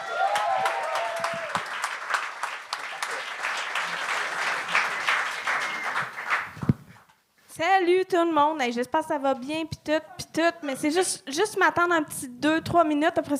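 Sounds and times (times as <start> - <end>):
audience applause: 0.0 - 6.6
speech: 7.6 - 13.3.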